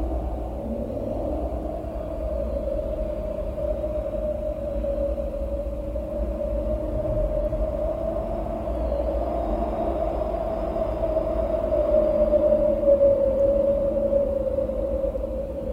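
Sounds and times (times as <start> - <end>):
hollow whistling tone: 0.0 - 15.7
wind blowing: 0.0 - 15.7.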